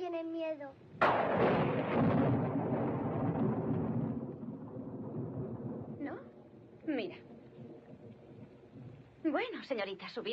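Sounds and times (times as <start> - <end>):
speech: 0.1 - 2.1, 6.9 - 7.3, 9.2 - 10.3
thunder rumbling: 1.0 - 9.2.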